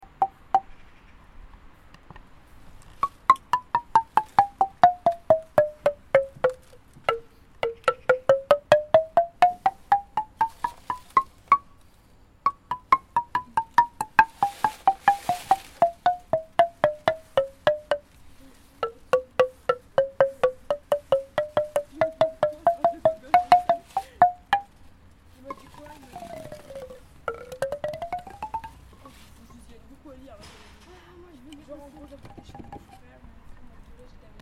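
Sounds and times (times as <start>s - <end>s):
xylophone: 0.0s - 0.7s, 3.0s - 11.7s, 12.5s - 18.1s, 18.8s - 24.8s, 25.4s - 29.3s, 31.8s - 33.1s.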